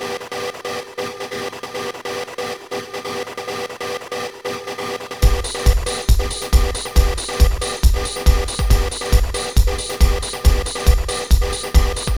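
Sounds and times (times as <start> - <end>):
mixed rave rhythm loop: 5.2 - 12.1.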